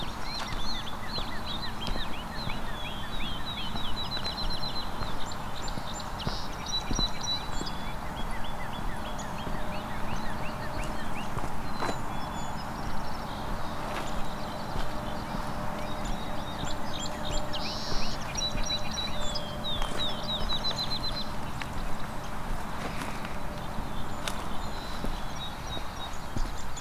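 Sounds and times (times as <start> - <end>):
many birds singing outdoors: 0.0 - 26.8.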